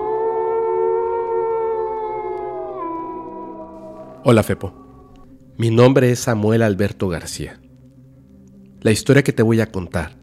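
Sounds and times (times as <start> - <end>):
howl in the dark: 0.0 - 5.3
speech: 4.2 - 4.8, 5.6 - 7.6, 8.8 - 10.2.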